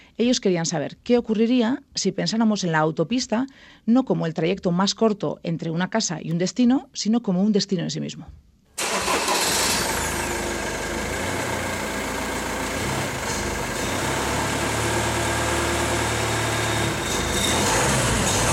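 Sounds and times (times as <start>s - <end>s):
speech: 0.2s - 8.5s
engine of a red Volkswagen van starting and running: 8.8s - 18.5s.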